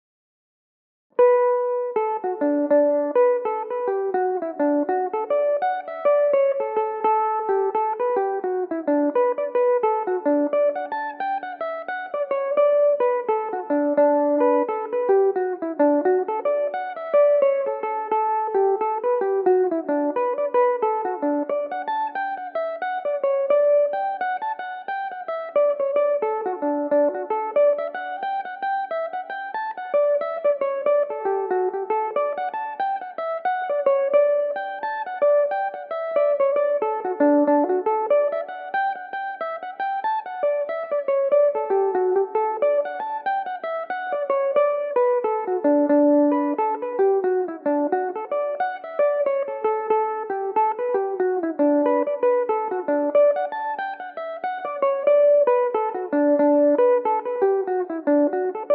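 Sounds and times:
Irish mandolin playing in D major: 1.2 - 58.7.

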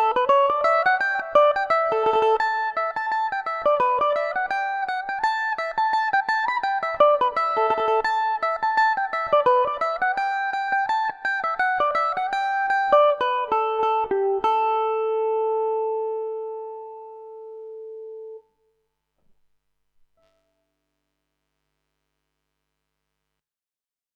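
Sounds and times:
Irish mandolin in A mixolydian: 0.0 - 18.6.

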